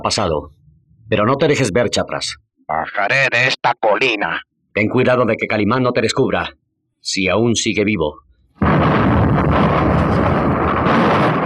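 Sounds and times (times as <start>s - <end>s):
speech: 0.0s - 9.7s
explosion rumbling: 8.6s - 11.4s.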